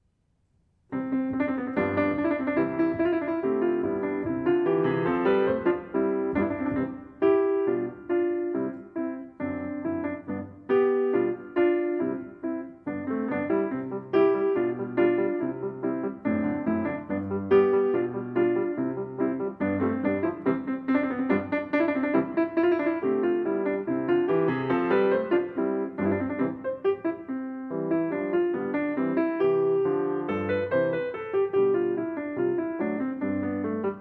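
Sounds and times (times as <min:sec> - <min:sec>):
solo piano: 0:00.0 - 0:33.9.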